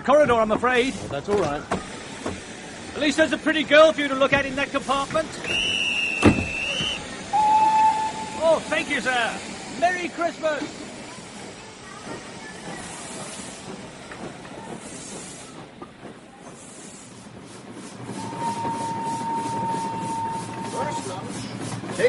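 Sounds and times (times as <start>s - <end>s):
speech: 0.0s - 2.4s, 3.0s - 5.8s, 8.4s - 10.8s
train rumbling along the rails: 0.0s - 22.0s
thin steady whistle-like tone: 5.4s - 8.4s, 18.2s - 21.0s.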